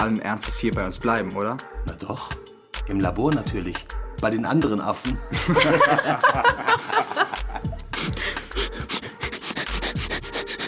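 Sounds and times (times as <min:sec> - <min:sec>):
speech: 0:00.0 - 0:06.9
laughter: 0:05.3 - 0:08.4
person sniffing loudly: 0:07.8 - 0:10.6.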